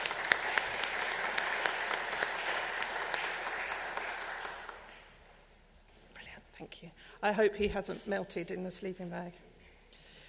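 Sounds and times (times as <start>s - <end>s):
audience applause: 0.0s - 5.1s
speech: 6.8s - 9.5s.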